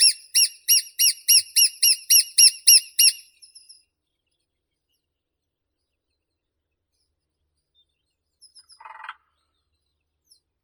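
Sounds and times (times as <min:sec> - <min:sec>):
lesser spotted woodpecker Dendrocopos minor: 0:00.0 - 0:03.8.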